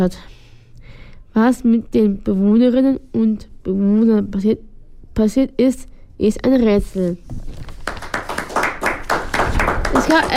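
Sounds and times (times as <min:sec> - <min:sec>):
speech: 0:00.0 - 0:00.3, 0:01.4 - 0:07.6, 0:10.1 - 0:10.3
small group applauding at a Berlin house for art and literature: 0:07.6 - 0:10.3.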